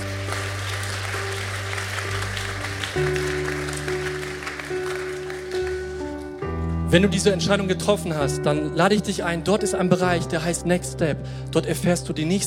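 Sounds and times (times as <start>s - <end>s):
audience applause: 0.0s - 6.2s
speech: 3.0s - 3.2s, 6.9s - 12.4s.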